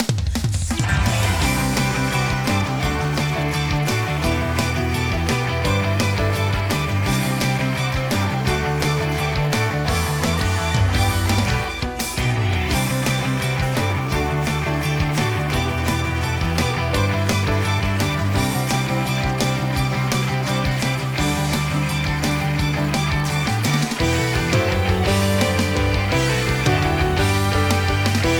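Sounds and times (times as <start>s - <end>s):
instrumental song without vocals: 0.9s - 28.3s.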